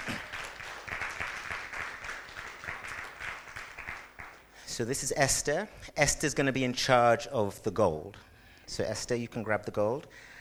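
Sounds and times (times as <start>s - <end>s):
audience applause: 0.0s - 4.5s
speech: 4.8s - 10.3s.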